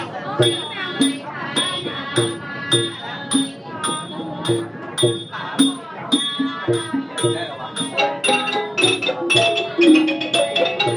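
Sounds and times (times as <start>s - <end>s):
sharp percussive strike: 0.0s - 10.9s
voices chanting at a Chan temple: 0.0s - 10.9s
ringing bell-like overtones: 2.8s - 10.9s.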